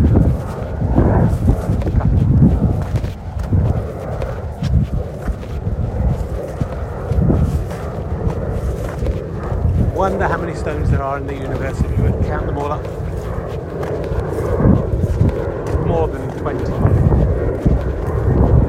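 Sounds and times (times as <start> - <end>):
plane flying overhead: 0.0 - 18.6
speech: 11.0 - 13.0.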